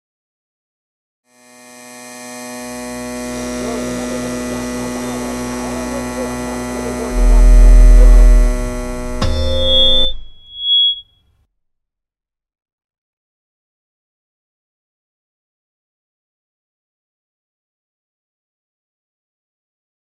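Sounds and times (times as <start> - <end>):
radio transition: 3.2 - 10.4.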